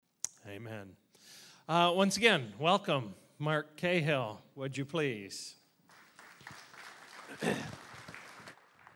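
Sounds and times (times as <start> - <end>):
speech: 0.5 - 5.6, 7.4 - 7.8
audience clapping: 5.9 - 8.9.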